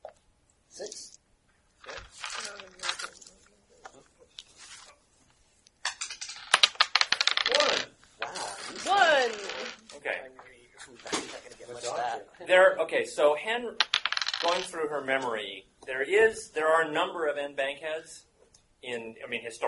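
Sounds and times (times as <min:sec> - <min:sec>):
speech: 0:00.8 - 0:01.2, 0:12.5 - 0:19.6
dice clattering across a hard surface: 0:01.8 - 0:03.3, 0:05.8 - 0:10.0, 0:13.8 - 0:14.8.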